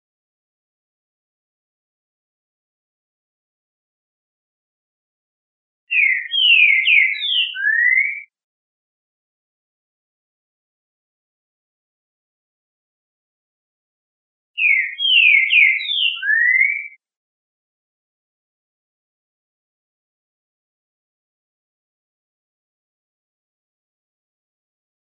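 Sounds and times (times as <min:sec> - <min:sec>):
Trinca Ferro bird singing classic song: 0:05.9 - 0:08.4, 0:14.6 - 0:17.0.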